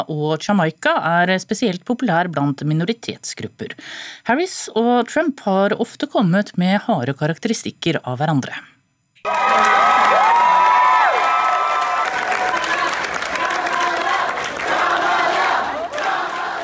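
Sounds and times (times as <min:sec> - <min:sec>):
speech: 0:00.0 - 0:09.7
crowd cheering and shouting: 0:09.2 - 0:16.6.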